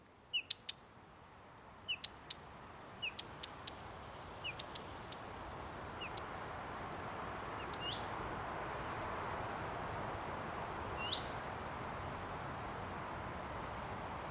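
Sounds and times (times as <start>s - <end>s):
steady rising hiss: 0.0s - 14.2s
bird chirps: 0.3s - 0.8s, 1.9s - 2.4s, 3.0s - 3.7s, 4.4s - 5.2s, 6.0s - 6.3s, 7.6s - 8.1s, 11.0s - 11.4s.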